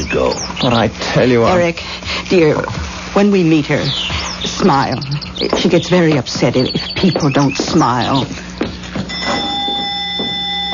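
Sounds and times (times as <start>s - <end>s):
speech: 0.0s - 8.4s
electric doorbell buzzing: 9.1s - 10.7s.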